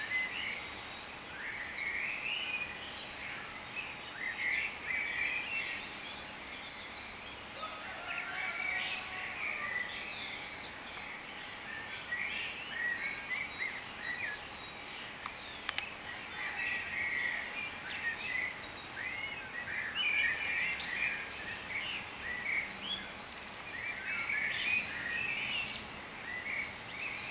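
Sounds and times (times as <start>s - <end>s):
birds chirping chorus: 0.0s - 27.2s
sharp clicks: 15.6s - 15.9s.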